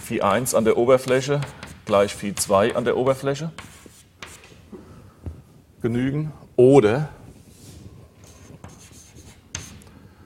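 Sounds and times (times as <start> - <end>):
speech: 0.1 - 3.8, 5.8 - 7.2
pen or chalk writing on a board: 0.3 - 4.6, 8.2 - 9.9.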